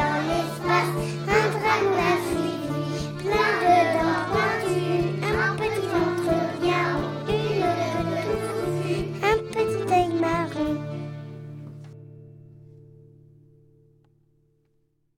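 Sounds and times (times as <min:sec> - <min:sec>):
song: 0:00.0 - 0:11.1.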